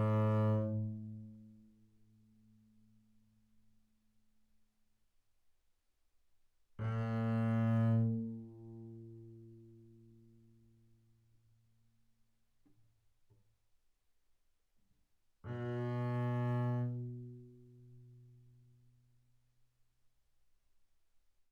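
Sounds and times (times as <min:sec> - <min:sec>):
double bass bowed fortissimo on G string: 0:00.0 - 0:01.0, 0:06.8 - 0:09.2, 0:15.5 - 0:17.4.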